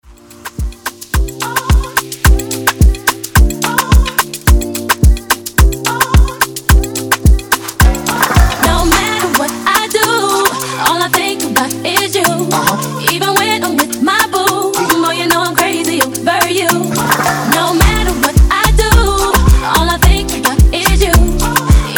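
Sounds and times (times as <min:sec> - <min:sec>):
dancehall breakbeat at 108 bpm: 0:00.1 - 0:21.9.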